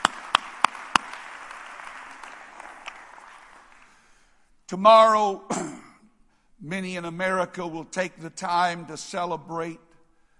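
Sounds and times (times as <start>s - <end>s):
audience clapping hands: 0.0s - 4.2s
speech: 4.7s - 5.8s, 6.6s - 9.9s.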